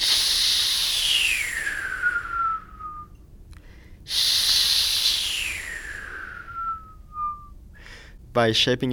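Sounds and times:
breathy hissing H sound made by mouth: 0:00.0 - 0:02.8, 0:03.6 - 0:07.0.

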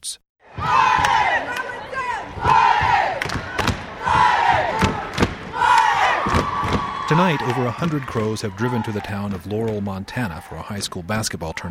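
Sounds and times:
speech: 0:00.0 - 0:00.8, 0:07.1 - 0:11.7
war cries from basketball crowd: 0:00.4 - 0:09.4
sharp thumps and claps: 0:00.9 - 0:01.7, 0:02.4 - 0:08.2, 0:09.0 - 0:09.9.

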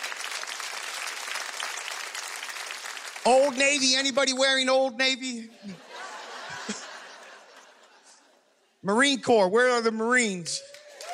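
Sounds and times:
audience clapping: 0:00.0 - 0:04.4, 0:10.4 - 0:11.1
speech: 0:03.2 - 0:05.8, 0:08.9 - 0:10.8
laughter: 0:05.5 - 0:08.7.

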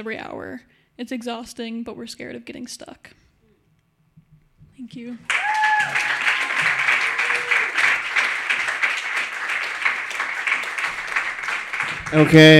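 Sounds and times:
speech: 0:00.0 - 0:03.3, 0:04.8 - 0:06.2, 0:12.1 - 0:12.5
crowd applauding: 0:05.3 - 0:12.5.

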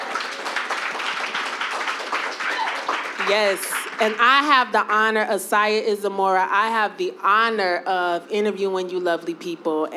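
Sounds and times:
audience applause: 0:00.0 - 0:04.2
speech: 0:03.3 - 0:09.9.

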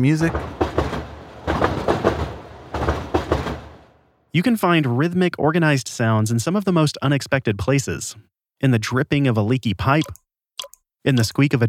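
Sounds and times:
speech: 0:00.0 - 0:00.6, 0:04.4 - 0:10.2, 0:11.0 - 0:11.6
rhythmic hum of the Uptown C subway train: 0:00.0 - 0:04.0.

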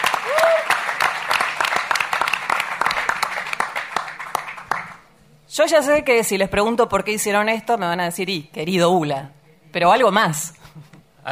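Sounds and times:
audience applause: 0:00.0 - 0:05.1
speech: 0:05.6 - 0:10.6.

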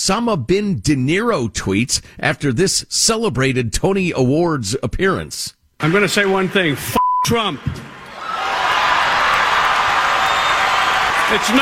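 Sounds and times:
speech: 0:00.0 - 0:08.0, 0:11.3 - 0:11.6
large crowd cheering and applauding: 0:07.5 - 0:11.6.

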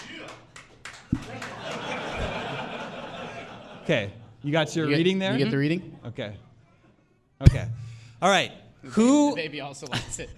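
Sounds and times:
audience applause: 0:00.0 - 0:03.5
laughter: 0:01.1 - 0:06.4, 0:09.8 - 0:10.3
speech: 0:03.9 - 0:06.5, 0:07.4 - 0:10.3.

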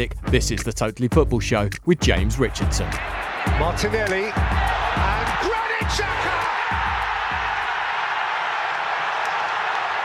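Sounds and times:
speech: 0:00.0 - 0:05.2, 0:05.8 - 0:06.4
football crowd cheering: 0:02.2 - 0:10.0.

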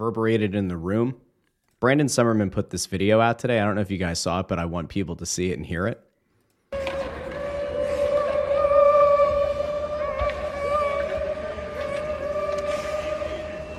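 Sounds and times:
speech: 0:00.0 - 0:06.1
noise: 0:00.0 - 0:13.7
players imitating a train, choo-chooing: 0:06.8 - 0:13.7.

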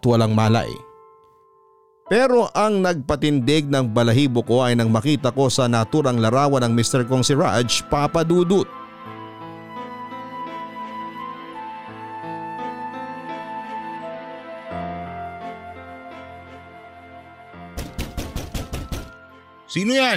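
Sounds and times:
speech: 0:00.0 - 0:00.9, 0:02.1 - 0:09.2, 0:19.7 - 0:20.1
soft sustained music: 0:00.0 - 0:20.1
pounding on a door: 0:17.8 - 0:19.2.

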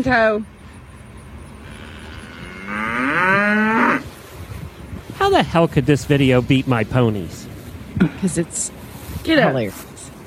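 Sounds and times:
speech: 0:00.0 - 0:00.6, 0:05.3 - 0:09.9
cow mooing: 0:01.6 - 0:04.1.

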